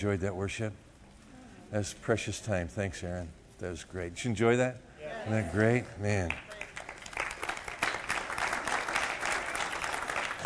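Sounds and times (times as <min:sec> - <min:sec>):
speech: 0:00.0 - 0:00.9, 0:01.7 - 0:06.6
audience clapping: 0:06.1 - 0:10.4.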